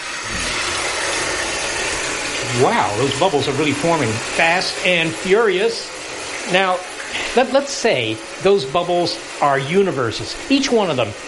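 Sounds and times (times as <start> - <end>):
faucet running into bathtub: 0.0 - 11.2
speech: 2.6 - 11.2.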